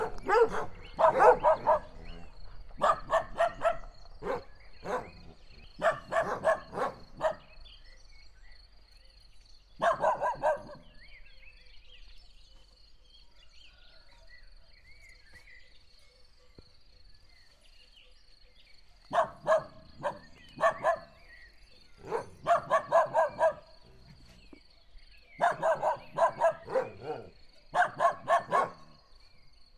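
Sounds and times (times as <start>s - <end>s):
dog at Egerturistaház: 0.0s - 7.5s, 9.8s - 10.9s, 19.0s - 21.2s, 22.0s - 24.6s, 25.4s - 29.0s.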